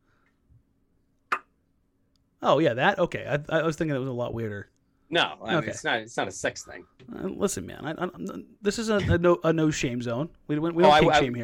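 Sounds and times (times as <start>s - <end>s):
tongue snapping click: 1.3s - 1.5s
speech: 2.4s - 11.4s.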